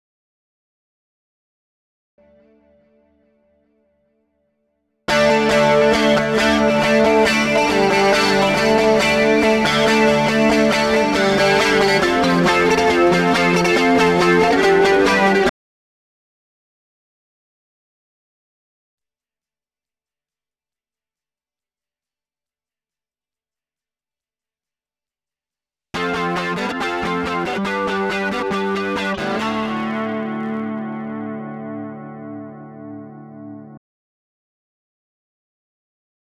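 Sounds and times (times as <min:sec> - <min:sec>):
mild lead guitar: 0:05.1 - 0:15.5, 0:26.0 - 0:33.8.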